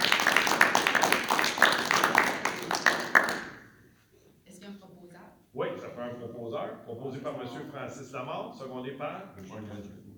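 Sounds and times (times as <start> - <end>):
applause: 0.0 - 3.7
speech: 7.1 - 10.1.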